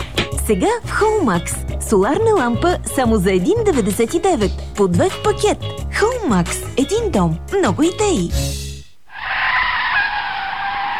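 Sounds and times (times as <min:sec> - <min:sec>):
speech: 0:00.5 - 0:08.6
car brakes screeching and tires skidding: 0:09.1 - 0:10.9.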